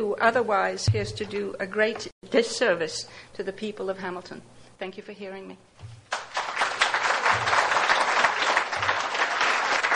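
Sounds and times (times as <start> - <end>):
speech: 0.2 - 5.7
clapping in a council chamber: 6.1 - 9.9.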